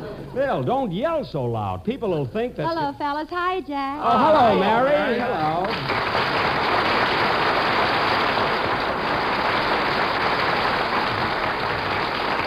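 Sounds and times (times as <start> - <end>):
speech: 0.4 - 7.3
audience applause: 5.2 - 12.4.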